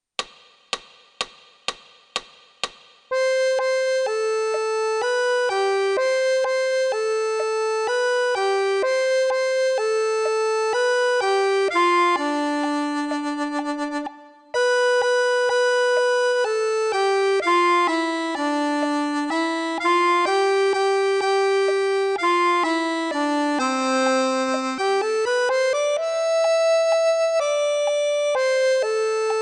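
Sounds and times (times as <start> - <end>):
Mexican folk song: 3.1 - 29.3.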